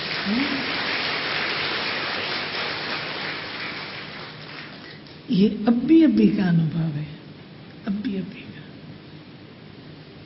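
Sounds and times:
audience clapping: 0.0s - 5.2s
speech: 0.2s - 0.6s, 5.3s - 7.2s, 7.9s - 8.5s.

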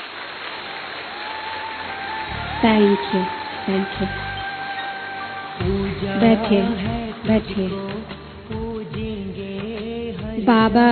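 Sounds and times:
audience applause for the mothers at a gathering: 0.0s - 6.0s
speech: 2.6s - 4.3s, 5.6s - 7.8s, 10.4s - 10.9s.

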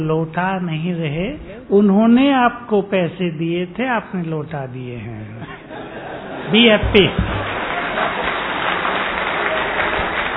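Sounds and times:
speech: 0.0s - 5.6s, 6.5s - 7.4s
laughter: 5.4s - 8.3s
audience applause: 6.6s - 10.3s.

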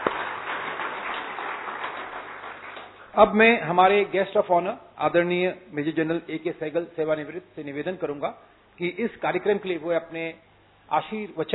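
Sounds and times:
audience applause: 0.0s - 3.1s
speech: 3.2s - 11.5s.

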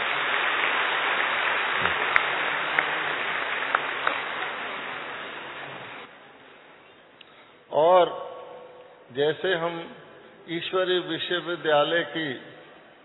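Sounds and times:
audience clapping for a birthday: 0.0s - 6.1s
speech: 9.2s - 12.5s.

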